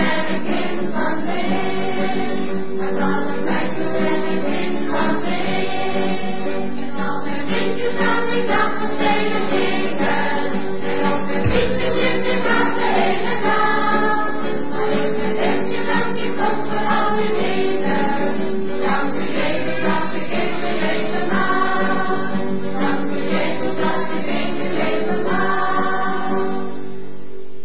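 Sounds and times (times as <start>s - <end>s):
choir singing a song: 0.0s - 26.9s.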